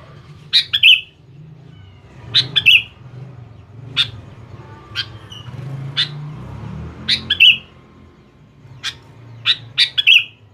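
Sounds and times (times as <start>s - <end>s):
sooty-headed bulbul calling: 0.5s - 1.2s, 2.3s - 3.0s, 7.0s - 7.8s, 8.7s - 10.5s.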